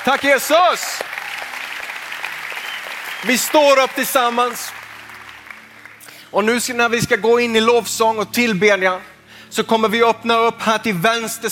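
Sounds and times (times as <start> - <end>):
speech: 0.0 - 1.2, 3.2 - 4.8, 6.3 - 11.5
audience applause: 0.0 - 6.1.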